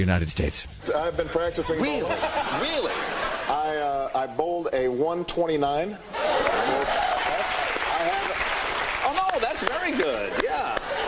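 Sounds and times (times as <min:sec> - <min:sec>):
speech: 0:00.0 - 0:07.1, 0:09.6 - 0:10.9
laughter: 0:00.9 - 0:04.1, 0:06.1 - 0:08.4, 0:09.4 - 0:11.0
crowd applauding: 0:06.2 - 0:11.0.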